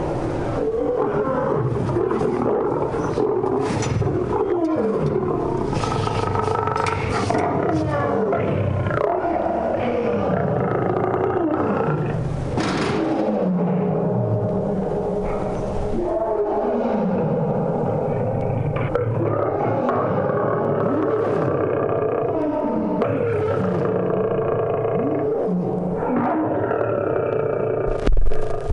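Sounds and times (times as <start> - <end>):
zoo animals roaring, echoing throughout the zoo: 0.0 - 28.6.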